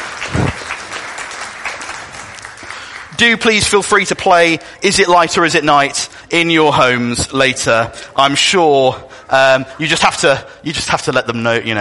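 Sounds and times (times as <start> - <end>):
audience applause: 0.0 - 3.4
speech: 3.2 - 11.7.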